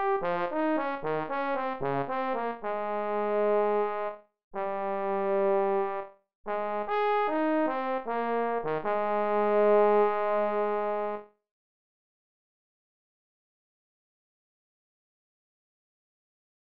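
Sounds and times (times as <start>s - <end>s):
trombone: 0.0s - 11.2s.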